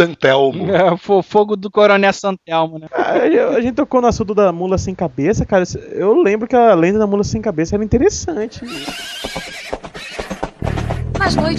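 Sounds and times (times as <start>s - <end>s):
speech: 0.0s - 9.8s, 11.2s - 11.5s
laughter: 0.5s - 1.0s, 2.9s - 3.8s
horse neighing: 8.5s - 10.6s
horse snorting: 8.6s - 11.0s.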